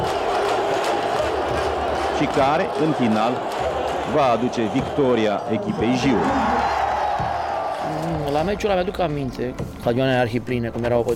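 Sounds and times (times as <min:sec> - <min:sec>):
large stadium crowd cheering a goal: 0:00.0 - 0:10.1
speech: 0:02.2 - 0:06.8, 0:08.3 - 0:11.1
shouts: 0:02.2 - 0:08.2.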